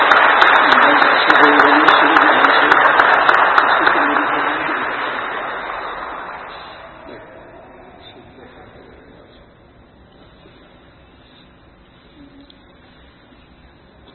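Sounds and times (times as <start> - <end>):
wedding audience applauding: 0.0 - 8.9.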